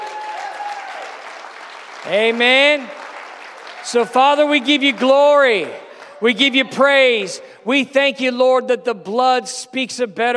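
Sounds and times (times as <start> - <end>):
audience clapping hands: 0.0 - 7.1
speech: 2.0 - 3.0, 3.8 - 10.3.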